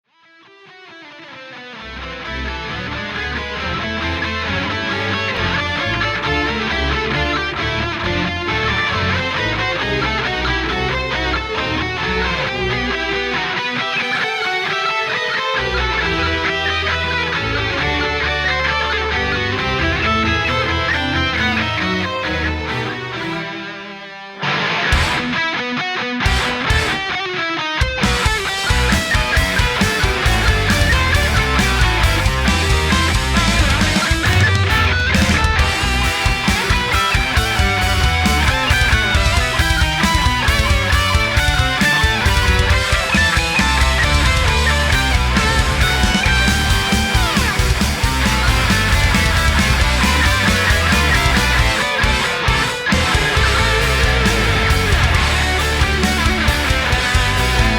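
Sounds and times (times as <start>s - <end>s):
rock cover music: 0.4s - 57.7s.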